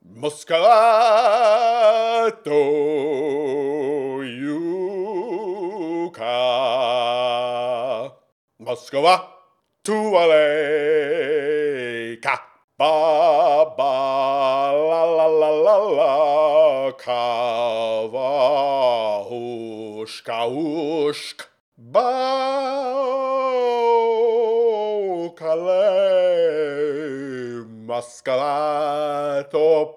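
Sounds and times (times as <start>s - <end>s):
person singing: 0.0s - 9.3s, 9.9s - 29.9s.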